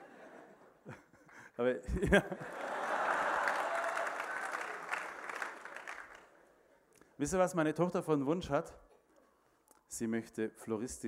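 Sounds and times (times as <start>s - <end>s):
laughter: 0.0s - 4.2s
speech: 1.6s - 2.7s, 7.2s - 8.8s, 9.9s - 11.0s
audience clapping: 2.4s - 6.6s.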